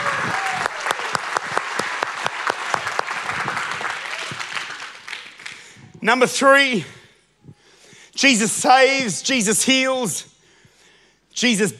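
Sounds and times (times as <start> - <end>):
audience clapping hands: 0.0 - 5.9
speech: 6.0 - 7.0, 8.2 - 10.3, 11.4 - 11.7.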